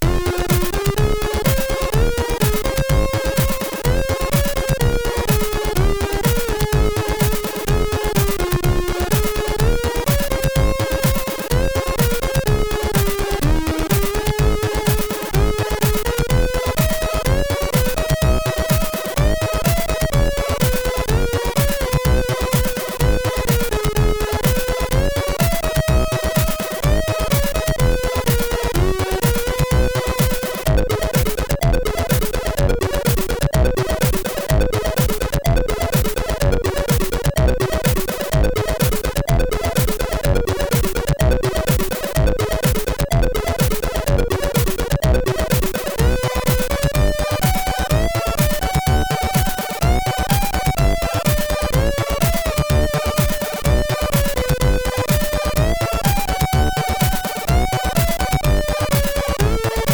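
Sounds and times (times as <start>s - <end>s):
chiptune music on a MOS6581R3 SID chip: 0.0s - 59.9s.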